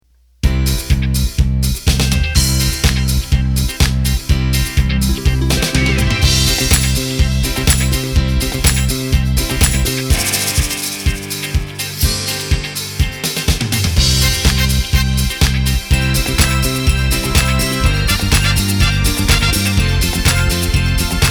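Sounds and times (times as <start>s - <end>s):
disco music: 0.4s - 21.2s.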